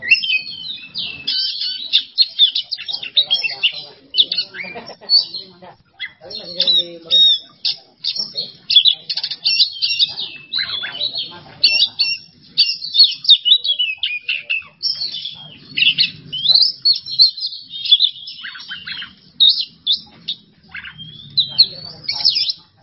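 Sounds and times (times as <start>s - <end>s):
Oriental magpie-robin singing: 0.0s - 22.8s
laughter: 3.1s - 7.0s.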